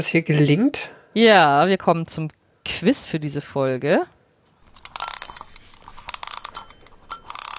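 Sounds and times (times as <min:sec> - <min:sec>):
speech: 0:00.0 - 0:04.2
mechanical alarm clock being wound: 0:04.6 - 0:07.5
faint metallic ringing: 0:05.0 - 0:07.5.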